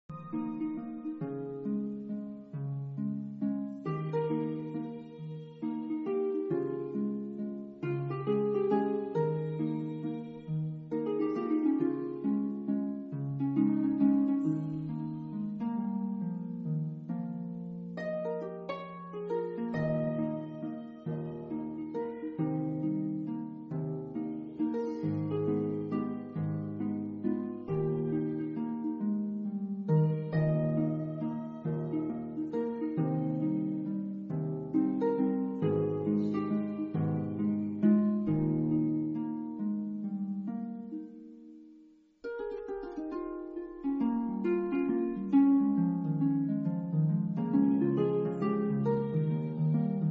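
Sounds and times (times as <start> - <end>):
exploration instrumental music: 0.0 - 50.0.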